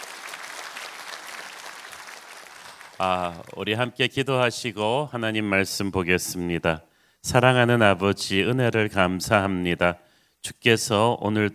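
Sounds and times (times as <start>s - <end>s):
audience applause: 0.0s - 3.7s
speech: 3.0s - 11.5s.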